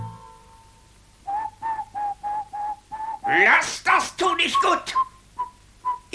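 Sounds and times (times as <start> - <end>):
person whistling a tune: 1.3 - 3.3, 4.5 - 6.1.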